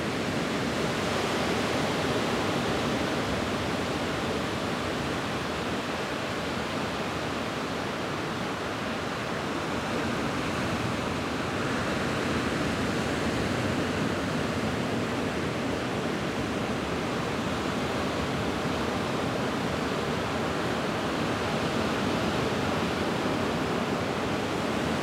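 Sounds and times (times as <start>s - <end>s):
powerful Pacific Ocean waves crashing on a secluded sandy beach in Choco Colombia: 0.0s - 25.0s.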